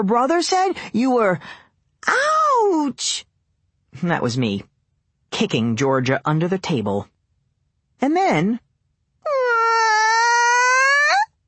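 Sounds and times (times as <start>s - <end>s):
speech: 0.0s - 3.3s, 3.9s - 4.7s, 5.3s - 7.1s, 8.0s - 8.6s
fake crying wail in imitation of a howler monkey: 9.2s - 11.3s.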